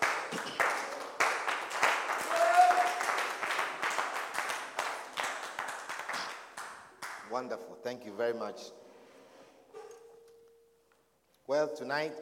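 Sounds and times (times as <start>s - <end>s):
audience clapping: 0.0s - 7.3s
speech: 7.4s - 8.8s, 11.5s - 12.2s.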